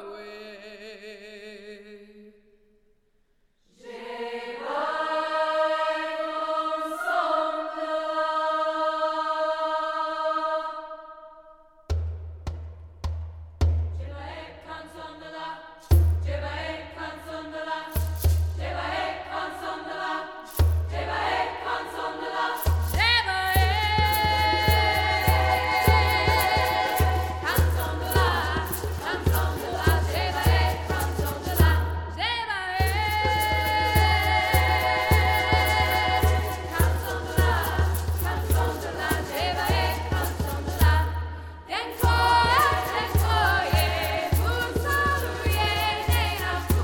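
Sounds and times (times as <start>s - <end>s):
women's choir singing: 3.7s - 11.6s, 14.0s - 46.8s.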